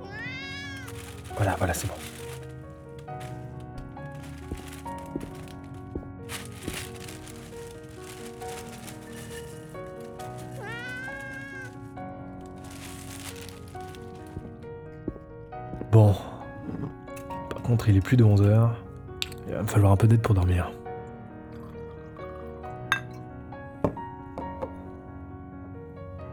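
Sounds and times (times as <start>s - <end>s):
cat meowing for food: 0.0s - 1.3s, 10.4s - 11.8s
speech: 1.4s - 2.2s, 17.8s - 18.9s, 19.6s - 20.8s.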